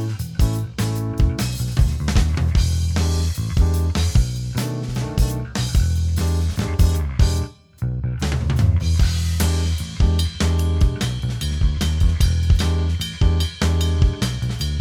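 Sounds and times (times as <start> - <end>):
backing track without guitar: 0.0 - 14.7.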